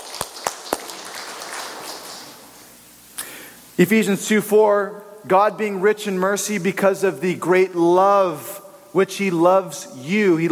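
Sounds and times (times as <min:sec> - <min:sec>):
audience applauding: 0:00.0 - 0:02.6
speech: 0:03.8 - 0:10.4.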